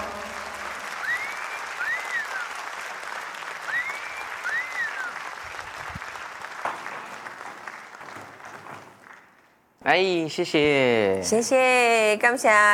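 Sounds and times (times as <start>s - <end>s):
audience applause: 0.0s - 9.5s
speech: 9.8s - 12.7s.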